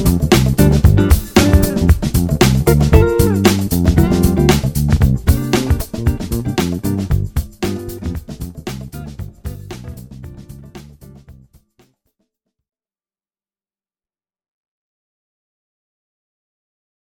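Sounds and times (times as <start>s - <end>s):
bass: 0.0s - 11.6s.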